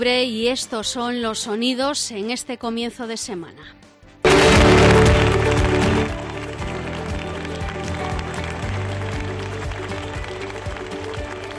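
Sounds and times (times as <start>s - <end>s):
speech: 0.0s - 3.9s
applause: 4.3s - 11.5s.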